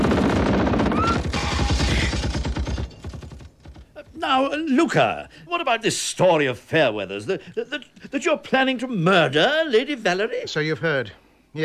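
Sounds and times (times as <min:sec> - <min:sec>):
automatic gunfire fired from a car: 0:00.0 - 0:04.0
speech: 0:04.3 - 0:11.6.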